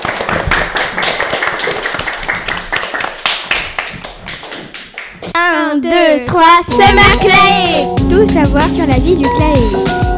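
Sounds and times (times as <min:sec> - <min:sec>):
audience clapping hands: 0:00.0 - 0:05.4
speech: 0:05.4 - 0:10.0.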